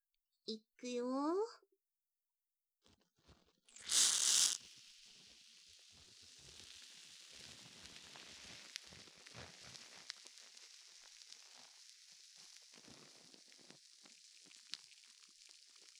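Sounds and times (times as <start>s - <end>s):
speech: 0.5s - 1.7s
soft fizzing crackle with tiny pops: 3.7s - 15.9s
loud hiss: 3.8s - 5.0s.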